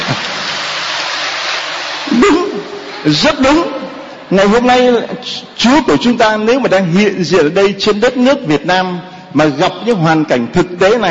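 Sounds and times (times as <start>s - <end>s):
audience applause: 0.0s - 3.1s
speech: 2.2s - 11.1s.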